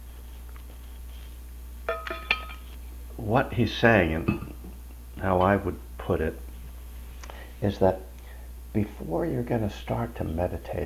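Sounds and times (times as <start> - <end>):
drinking glass clinks and taps: 1.9 - 2.6, 4.2 - 4.6
speech: 3.2 - 4.5, 5.2 - 6.4, 7.6 - 8.1, 8.7 - 10.8.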